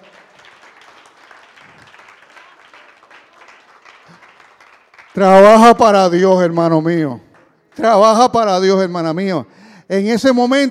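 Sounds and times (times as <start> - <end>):
audience applause: 0.0 - 5.3
speech: 5.2 - 10.6.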